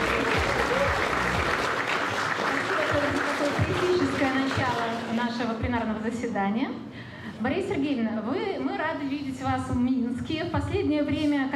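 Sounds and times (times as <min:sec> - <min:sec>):
audience applause: 0:00.0 - 0:05.1
speech: 0:05.6 - 0:11.5.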